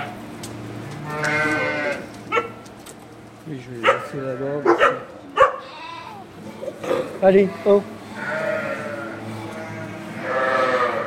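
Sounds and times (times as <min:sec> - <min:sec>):
murmur of many animals: 0:00.0 - 0:11.0
ewes bleating in a flock on a farm: 0:01.0 - 0:02.1, 0:03.9 - 0:04.6, 0:05.5 - 0:11.0
speech: 0:03.5 - 0:05.3, 0:07.2 - 0:08.0.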